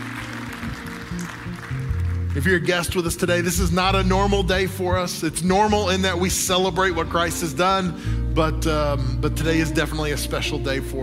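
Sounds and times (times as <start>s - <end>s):
round of applause: 0.0s - 2.8s
speech: 2.3s - 11.0s.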